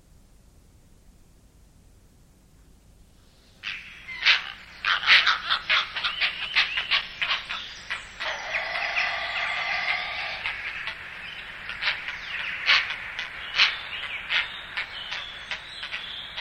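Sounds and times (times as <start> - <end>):
heron calls: 3.6 - 16.3.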